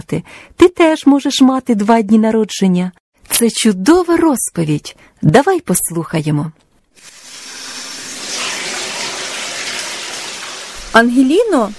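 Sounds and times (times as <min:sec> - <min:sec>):
speech: 0:00.0 - 0:07.2, 0:10.9 - 0:11.7
tap water running into a bathtub: 0:07.0 - 0:11.7.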